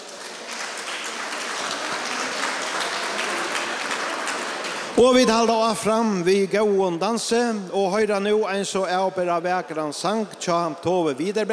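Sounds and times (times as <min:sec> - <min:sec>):
audience applause: 0:00.0 - 0:05.6
speech: 0:05.0 - 0:11.5.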